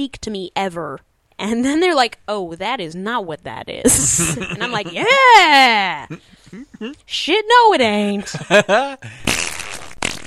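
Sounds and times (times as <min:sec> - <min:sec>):
speech: 0:00.0 - 0:09.3
laughter: 0:03.9 - 0:07.0, 0:08.1 - 0:09.2
fart: 0:09.2 - 0:10.2.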